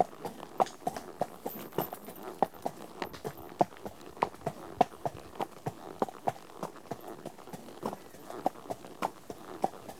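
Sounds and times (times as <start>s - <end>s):
horse hooves clip-clopping at walk on tarmac: 0.0s - 9.9s.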